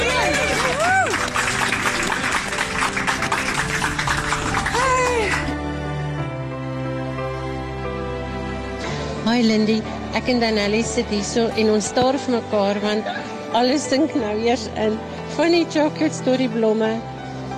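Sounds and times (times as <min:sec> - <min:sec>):
people whooping: 0:00.0 - 0:02.3, 0:04.4 - 0:05.5
crowd clapping enthusiastically: 0:00.0 - 0:05.6
gentle music: 0:00.0 - 0:17.5
speech: 0:09.4 - 0:17.1.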